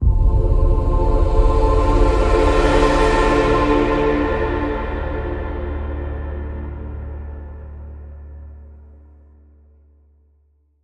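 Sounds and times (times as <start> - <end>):
mystical echoing swell: 0.0 - 8.6.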